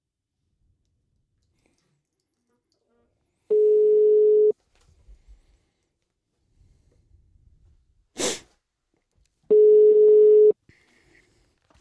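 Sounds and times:
telephone ringback tone during outgoing call: 3.5s - 4.6s, 9.5s - 10.6s.

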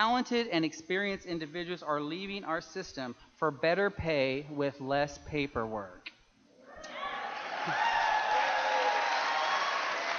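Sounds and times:
speech: 0.0s - 6.1s, 7.6s - 7.9s
audience cheering: 6.7s - 10.1s.

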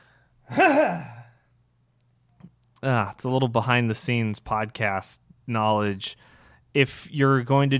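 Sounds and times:
throat clearing: 0.5s - 1.4s
speech: 2.8s - 7.7s.

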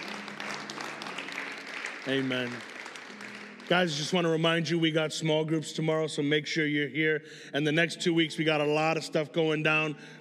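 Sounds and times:
audience applause: 0.0s - 4.8s
speech: 2.0s - 2.7s, 3.7s - 10.1s.

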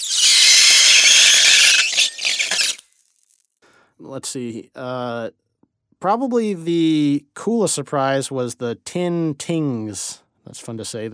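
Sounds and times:
metal ball bearings whining on dry ice: 0.0s - 2.8s
speech: 4.0s - 5.4s, 6.0s - 11.1s.

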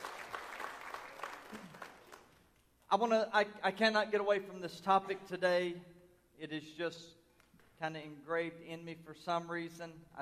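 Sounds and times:
audience clapping hands in praise: 0.0s - 2.6s
speech: 2.9s - 7.2s, 7.8s - 10.1s.

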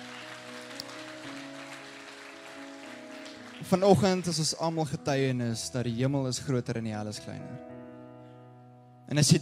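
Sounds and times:
audience clapping: 0.0s - 4.8s
speech: 3.6s - 7.7s, 9.1s - 9.4s.

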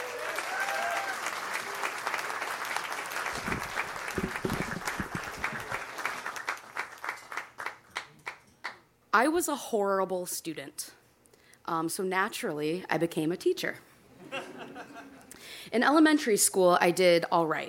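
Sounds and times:
audience applause: 0.0s - 7.8s
speech: 9.2s - 11.0s, 11.7s - 13.9s, 15.7s - 17.6s
laughter: 14.2s - 15.3s.

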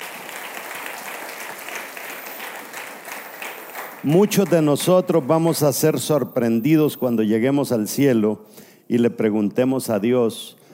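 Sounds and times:
audience applause: 0.0s - 5.4s
speech: 4.0s - 10.6s.

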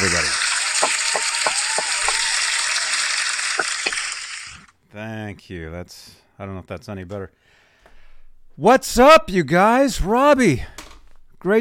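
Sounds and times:
crowd applauding: 0.0s - 4.7s
speech: 5.0s - 7.6s, 8.6s - 10.8s, 11.4s - 11.5s.

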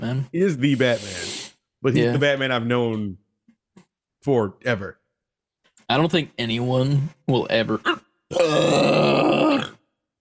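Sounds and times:
speech: 0.0s - 3.2s, 4.2s - 5.0s, 5.9s - 9.8s
burp: 8.3s - 10.0s.

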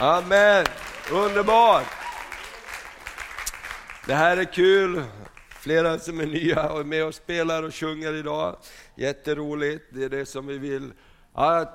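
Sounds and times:
speech: 0.0s - 2.0s, 4.0s - 11.7s
audience applause: 0.0s - 5.6s.

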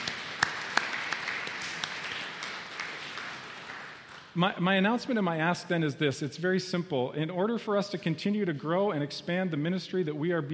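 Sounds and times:
audience applause: 0.0s - 4.2s
speech: 4.4s - 10.5s.

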